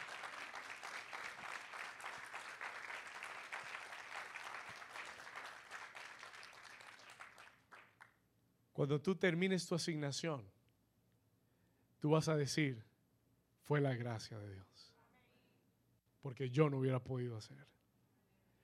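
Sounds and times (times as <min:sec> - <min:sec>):
audience applauding: 0:00.0 - 0:08.1
speech: 0:08.8 - 0:10.6, 0:12.0 - 0:12.9, 0:13.6 - 0:15.0, 0:16.2 - 0:17.8.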